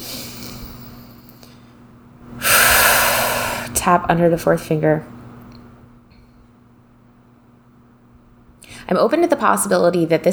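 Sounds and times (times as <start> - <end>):
deep breath drawn in during an EFT tapping session: 0.0 - 1.7, 2.3 - 3.8
speech: 3.8 - 5.2, 8.9 - 10.3.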